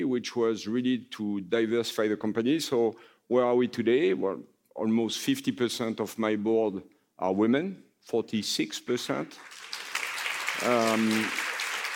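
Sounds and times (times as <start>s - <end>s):
speech: 0.2s - 9.7s, 10.6s - 11.4s
audience applause: 9.4s - 11.9s.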